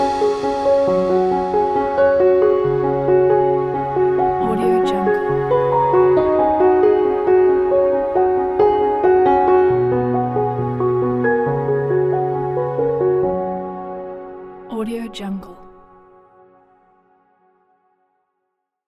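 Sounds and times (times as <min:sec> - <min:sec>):
wedding background piano music: 0:00.0 - 0:17.8.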